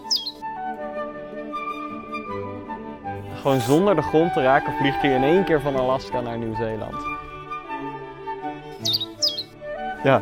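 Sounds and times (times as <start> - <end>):
orange-breasted bird chirping: 0.0 - 0.4, 8.7 - 9.6
speech: 3.4 - 7.2, 10.0 - 10.2.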